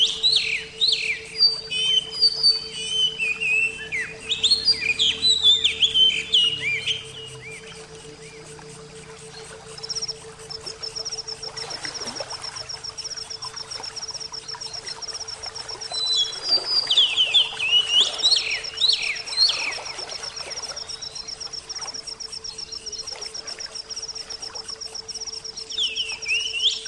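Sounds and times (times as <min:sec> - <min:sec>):
oriental magpie-robin whistled song: 0:00.0 - 0:08.4, 0:15.9 - 0:19.9, 0:25.6 - 0:26.8.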